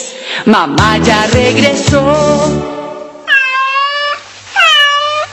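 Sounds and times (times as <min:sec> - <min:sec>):
speech: 0:00.4 - 0:02.8
cat meowing: 0:03.3 - 0:05.3.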